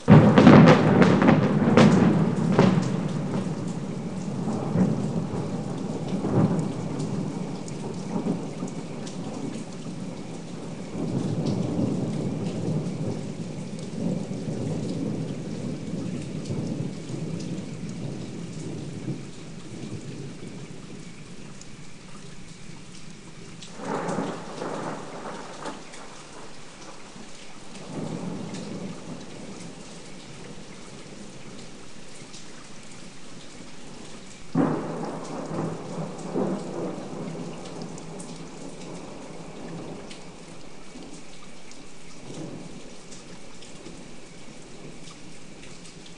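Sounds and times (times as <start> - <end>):
lightning crack of thunder: 0.1 - 20.7, 23.8 - 26.6, 27.8 - 29.7, 34.5 - 40.0.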